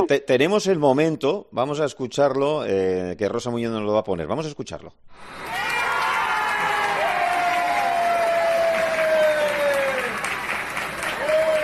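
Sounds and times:
speech: 0.0 - 5.6
neighbours and onlookers applauding: 5.2 - 11.6.

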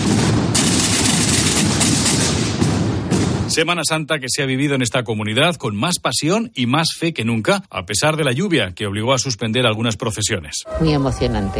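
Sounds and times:
Holy Week drums and bass drums in the streets of Aragón: 0.0 - 3.6
speech: 3.6 - 11.5.

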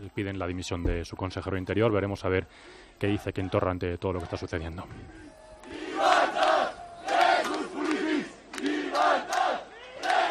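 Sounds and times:
speech: 0.0 - 5.2
rioters shouting in the streets of Barcelona: 4.2 - 10.2.

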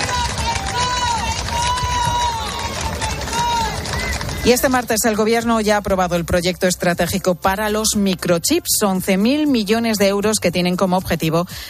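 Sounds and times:
crowd shouting long live the king: 0.0 - 4.9
speech: 4.4 - 11.6.

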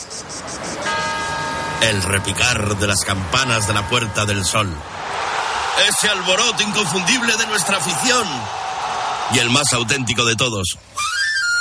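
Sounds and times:
quiet street murmur during siesta after lunch: 0.0 - 5.7
speech: 1.8 - 5.1, 5.8 - 8.7, 9.3 - 11.0.

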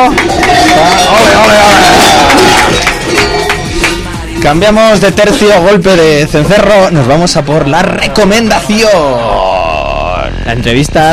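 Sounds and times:
loud audience applause: 0.0 - 3.9
speech: 4.4 - 9.4, 10.4 - 11.1.

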